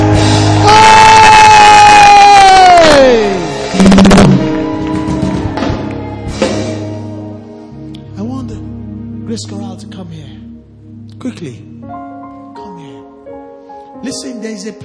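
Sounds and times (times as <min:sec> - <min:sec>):
audience shouting praise: 0:00.4 - 0:07.0
speech: 0:14.2 - 0:14.8.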